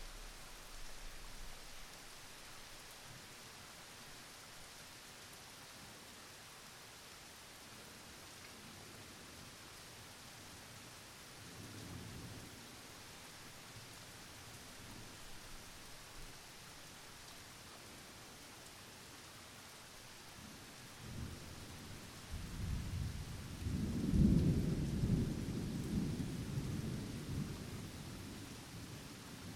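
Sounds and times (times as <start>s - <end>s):
gentle steady rain in a mild rainstorm: 0.0s - 29.5s.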